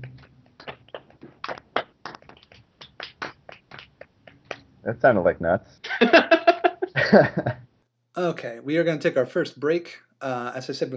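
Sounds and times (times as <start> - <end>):
golf clap: 0.7 - 4.7
speech: 4.8 - 6.3, 7.1 - 7.6, 8.2 - 10.9
laughter: 5.8 - 7.6.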